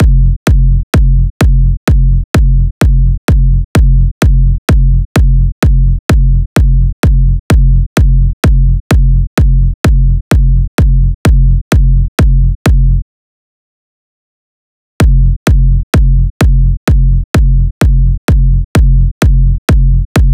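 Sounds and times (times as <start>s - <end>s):
kick drum at 128 bpm: 0.0s - 13.0s, 15.0s - 20.3s.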